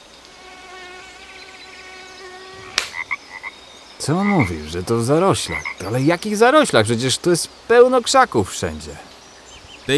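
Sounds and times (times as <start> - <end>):
insects whining in a wetland: 0.0 - 9.9
chorus of frogs droning: 1.1 - 9.9
short high chirping calls: 3.6 - 9.9
speech: 4.0 - 9.1.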